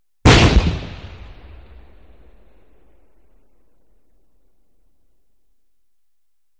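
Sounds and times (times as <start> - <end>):
small explosion: 0.2 - 4.3.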